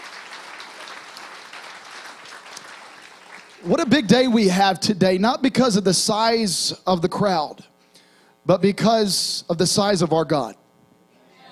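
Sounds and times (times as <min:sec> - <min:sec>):
large audience applauding: 0:00.0 - 0:03.9
speech: 0:03.6 - 0:07.7, 0:08.5 - 0:10.6.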